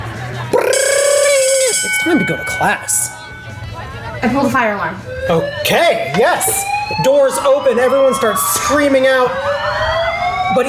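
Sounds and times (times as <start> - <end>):
school bell ringing: 0.6 - 4.6
speech: 2.1 - 3.2, 4.2 - 9.9.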